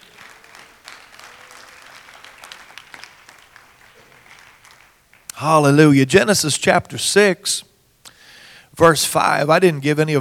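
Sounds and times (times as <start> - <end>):
audience clapping hands: 0.0 - 5.7
speech: 5.4 - 7.7, 8.8 - 10.1.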